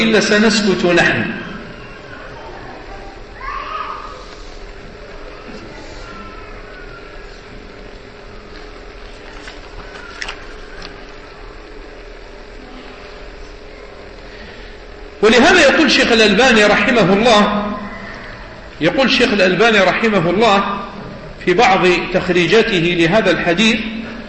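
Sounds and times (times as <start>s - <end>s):
speech: 0.0s - 1.5s, 15.2s - 17.6s, 18.8s - 20.8s, 21.4s - 24.0s
children playing and chattering: 1.7s - 11.8s, 17.7s - 18.8s.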